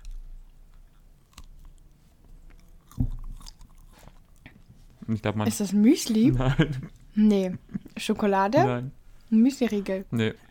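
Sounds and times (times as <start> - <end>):
biting and chewing pumpernickel bread: 0.0 - 4.7
speech: 5.1 - 10.4
laughter: 6.3 - 6.9.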